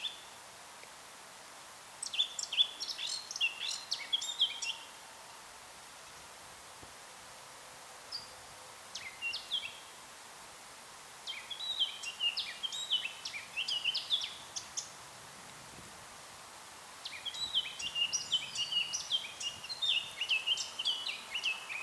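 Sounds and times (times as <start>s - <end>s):
Eurasian blackcap song: 2.0s - 4.9s, 8.9s - 9.9s, 11.3s - 15.0s, 17.0s - 21.8s.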